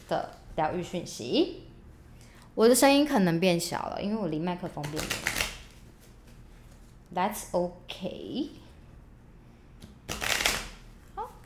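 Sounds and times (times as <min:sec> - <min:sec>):
speech: 0:00.1 - 0:01.7, 0:02.6 - 0:05.4, 0:07.1 - 0:08.6
tarot cards being shuffled: 0:04.8 - 0:06.9, 0:09.8 - 0:11.3.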